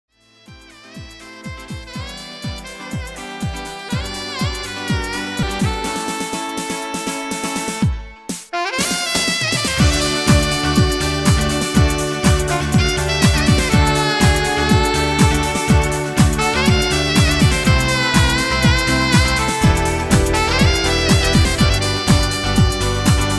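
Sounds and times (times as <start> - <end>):
saxophone: 0.1 - 23.3.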